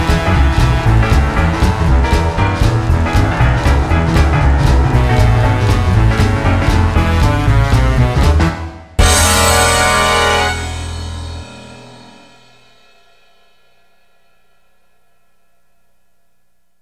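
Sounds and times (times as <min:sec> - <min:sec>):
big band swing jazz: 0:00.0 - 0:13.3.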